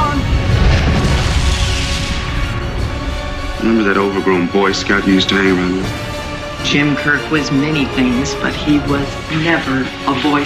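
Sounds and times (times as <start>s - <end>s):
starship weapons fire and explosion in a science-fiction space battle: 0.0s - 6.5s
speech: 3.7s - 10.4s.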